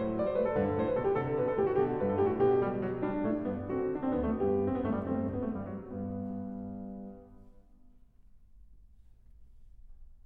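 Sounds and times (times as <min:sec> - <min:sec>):
baroque keyboard canon: 0:00.0 - 0:07.5.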